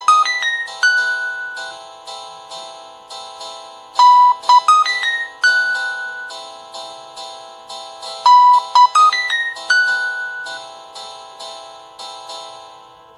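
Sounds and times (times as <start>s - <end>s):
Samsung Galaxy A15 5G ringtone: 0.0s - 13.1s.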